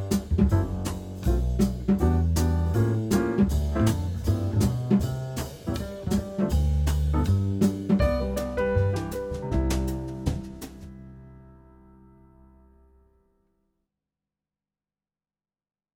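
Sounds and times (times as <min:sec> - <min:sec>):
jazz etude: 0:00.0 - 0:12.2.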